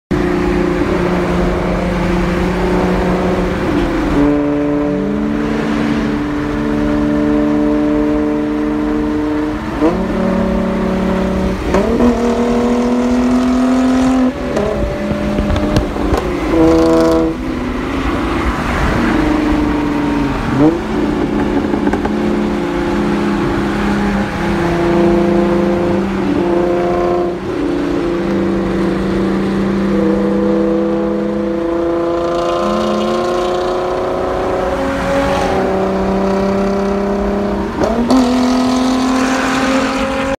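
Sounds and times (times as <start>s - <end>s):
Hyundai Genesis Coupe engine: 0.1s - 40.3s.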